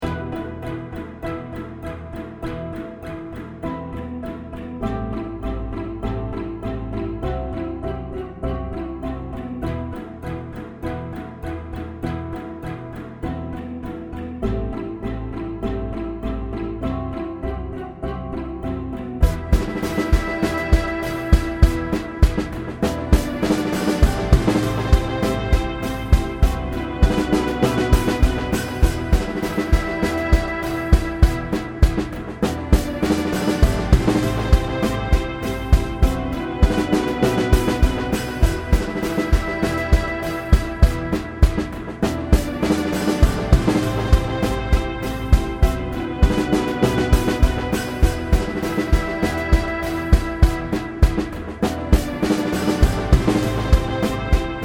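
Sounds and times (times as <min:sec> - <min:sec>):
pizzicato strings: 0:00.0 - 0:54.6
drums: 0:19.2 - 0:54.6.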